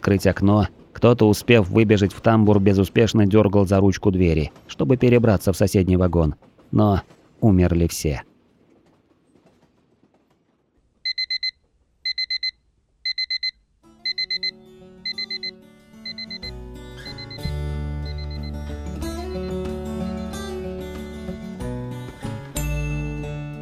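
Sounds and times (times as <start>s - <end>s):
speech: 0.1s - 8.3s
electronic alarm clock beeping in quick shrill bursts: 11.1s - 18.7s, 19.3s - 19.6s
swelling music: 15.6s - 23.6s.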